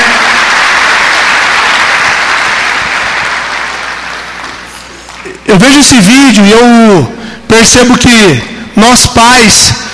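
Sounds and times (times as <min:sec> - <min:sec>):
crowd applause: 0:00.0 - 0:05.1
speech: 0:05.5 - 0:09.9.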